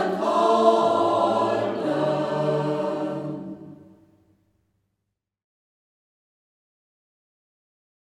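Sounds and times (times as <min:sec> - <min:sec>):
choir singing: 0:00.0 - 0:04.0.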